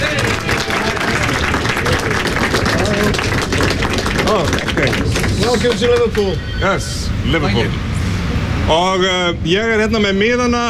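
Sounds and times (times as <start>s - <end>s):
audience clapping at the Cavern Club in Liverpool: 0.0s - 6.4s
speech: 4.3s - 7.8s, 8.7s - 10.6s.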